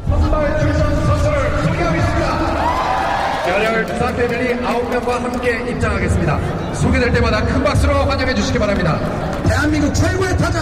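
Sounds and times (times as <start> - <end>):
baseball stadium crowd chatter on opening day: 0.0 - 10.5
scattered whoops and cheers: 2.4 - 3.7
speech: 3.8 - 10.5.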